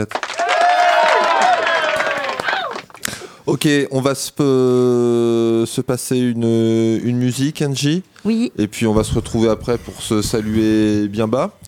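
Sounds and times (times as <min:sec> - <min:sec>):
speech: 0:00.0 - 0:00.4, 0:03.5 - 0:11.6
applause and cheering sound effect: 0:00.0 - 0:03.0.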